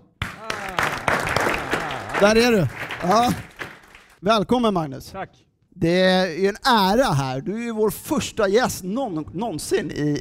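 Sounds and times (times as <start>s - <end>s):
audience applause: 0.1s - 4.2s
speech: 2.2s - 3.5s, 4.2s - 10.2s.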